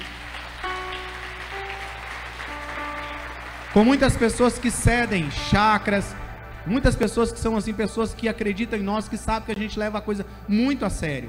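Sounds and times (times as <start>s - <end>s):
audience applause: 0.0s - 5.9s
speech: 3.8s - 11.2s.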